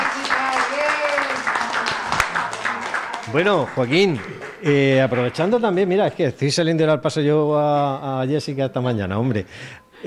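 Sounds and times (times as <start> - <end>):
audience applause: 0.0 - 5.6
speech: 3.3 - 10.0.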